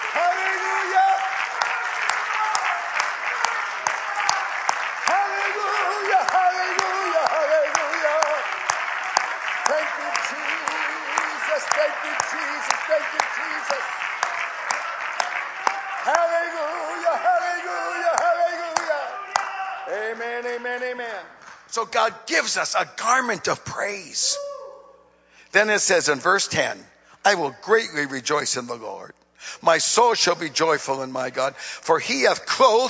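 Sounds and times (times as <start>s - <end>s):
audience clapping hands: 0.0s - 23.3s
speech: 21.8s - 24.4s, 25.5s - 32.8s.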